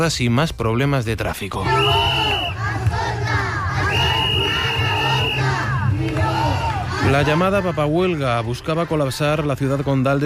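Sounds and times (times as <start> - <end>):
speech: 0.0 - 2.4, 7.0 - 10.2
crowd of protesting teachers shouting and chanting: 1.5 - 10.2
shrill whistle blast: 1.7 - 2.6, 3.8 - 5.6.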